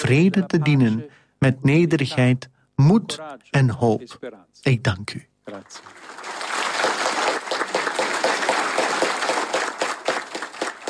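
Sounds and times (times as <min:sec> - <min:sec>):
speech: 0:00.1 - 0:06.2
applause from the cardinals around Pope Leo XIV: 0:05.5 - 0:10.8.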